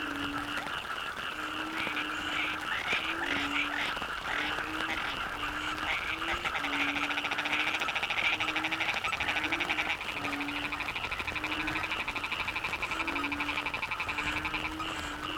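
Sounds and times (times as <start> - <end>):
Yamaha frogs in Cherating wetlands seaside village: 0.0 - 15.3.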